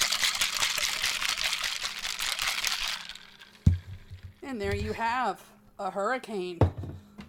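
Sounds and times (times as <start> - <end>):
ice rattling in a cocktail shaker being shaken hard: 0.0 - 4.4
speech: 4.5 - 6.8.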